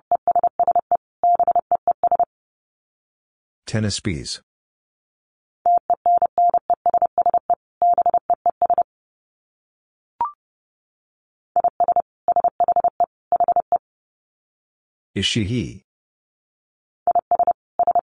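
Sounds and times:
fast Morse code tones at 30 wpm: 0.0 - 2.3, 5.7 - 8.8, 11.6 - 13.8, 17.1 - 18.0
speech: 3.7 - 4.5, 15.2 - 15.8.

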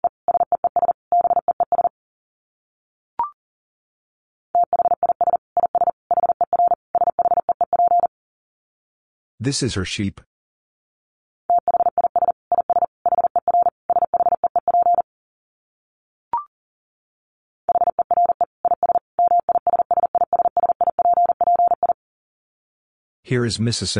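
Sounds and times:
rapid Morse code tones at about 40 words per minute: 0.3 - 1.9, 4.6 - 8.1, 11.5 - 15.0, 17.7 - 22.0
speech: 9.4 - 10.3, 23.3 - 23.9.

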